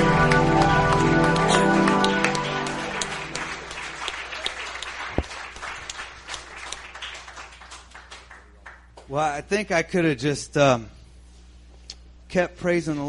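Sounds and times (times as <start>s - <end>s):
sustained music: 0.0s - 4.5s
audience cheering and applauding: 0.0s - 8.8s
speech: 9.2s - 11.0s, 12.3s - 13.0s.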